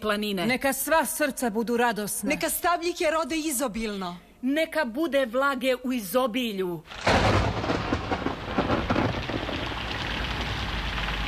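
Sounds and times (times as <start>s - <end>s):
speech: 0.0s - 7.4s
deep rumbling thunder: 6.9s - 11.2s
heavy rain in a thunderstorm: 6.9s - 11.2s.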